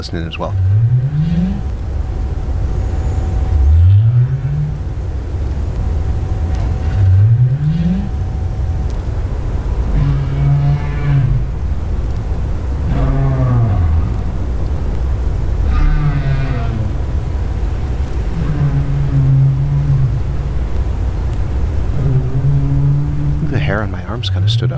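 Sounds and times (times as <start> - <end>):
speech: 0.0 - 1.0, 24.2 - 24.7
underwater rumble and hiss: 0.0 - 24.7
North Atlantic right whale up calls: 0.3 - 1.8, 3.4 - 5.0, 6.4 - 8.7, 9.7 - 11.8, 12.8 - 14.6, 15.5 - 24.7.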